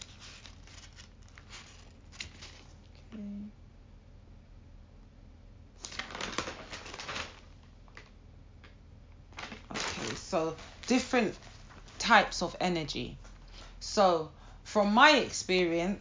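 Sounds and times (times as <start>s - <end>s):
paper notes being shuffled and leafed through: 0.0s - 3.0s, 5.8s - 8.1s, 9.3s - 12.0s
speech: 10.3s - 13.2s, 13.8s - 16.0s.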